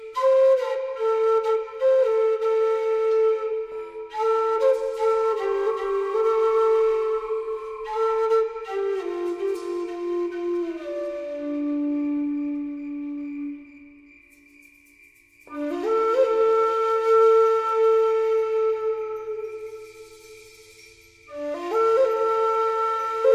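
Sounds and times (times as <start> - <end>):
flute: 0.0 - 23.3
cricket chirping: 4.6 - 16.3, 18.9 - 21.5.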